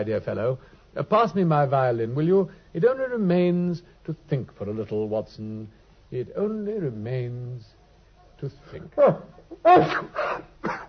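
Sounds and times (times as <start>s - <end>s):
speech: 0.0s - 7.8s, 8.4s - 10.8s
person sneezing after taking snuff: 9.0s - 10.8s.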